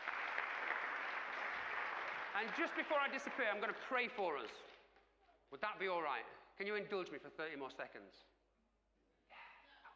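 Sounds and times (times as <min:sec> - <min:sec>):
crowd applause: 0:00.0 - 0:04.6
speech: 0:02.4 - 0:04.7, 0:05.5 - 0:08.3.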